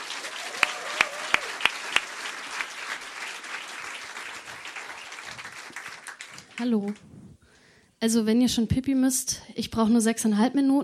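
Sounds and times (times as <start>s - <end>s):
audience applause: 0.0s - 7.0s
speech: 6.6s - 7.1s, 8.0s - 10.8s.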